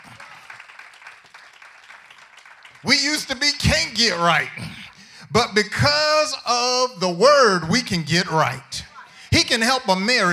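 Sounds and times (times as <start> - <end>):
crowd clapping: 0.0 - 4.7
speech: 2.8 - 8.8, 9.5 - 10.3.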